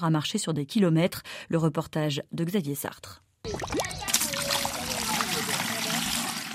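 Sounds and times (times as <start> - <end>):
speech: 0.0 - 3.8
water flowing from a fountain into a yellow 25-litre jerrycan: 3.5 - 6.5.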